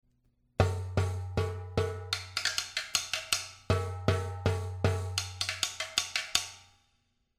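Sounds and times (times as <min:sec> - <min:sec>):
drum: 0:00.6 - 0:06.4.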